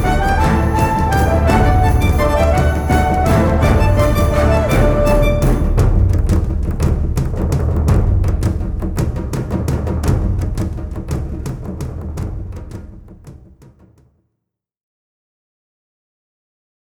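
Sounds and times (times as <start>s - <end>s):
pirate travel music: 0.0s - 12.6s.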